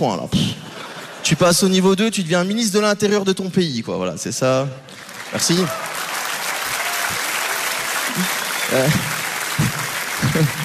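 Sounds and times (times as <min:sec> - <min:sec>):
speech: 0:00.0 - 0:00.5, 0:01.2 - 0:06.0, 0:08.2 - 0:09.2
audience applause: 0:04.9 - 0:10.6.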